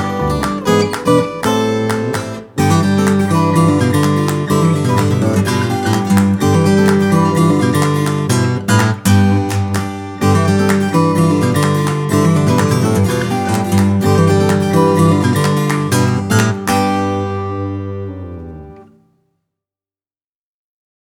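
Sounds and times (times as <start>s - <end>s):
corporate country music: 0.0s - 19.0s.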